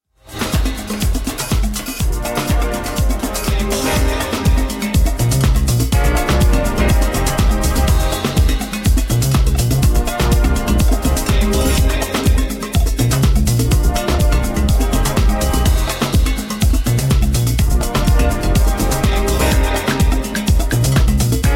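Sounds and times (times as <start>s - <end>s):
drum mix: 0.2s - 21.5s.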